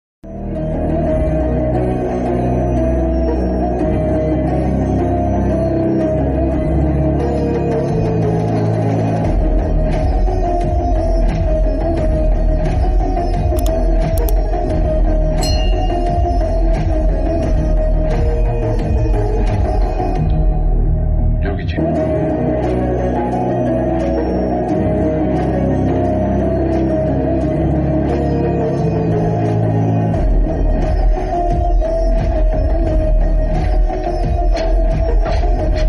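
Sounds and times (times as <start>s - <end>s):
villain entry background music ringtone: 0.3s - 35.8s.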